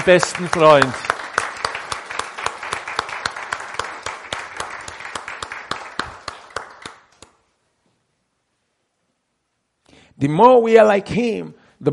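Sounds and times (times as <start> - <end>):
speech: 0.0 - 1.1, 10.2 - 11.9
congregation clapping in a church service: 0.0 - 7.4.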